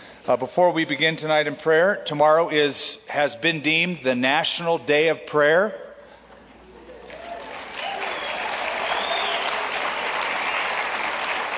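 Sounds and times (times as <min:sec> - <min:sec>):
speech: 0:00.3 - 0:05.8
audience clapping: 0:07.0 - 0:11.5.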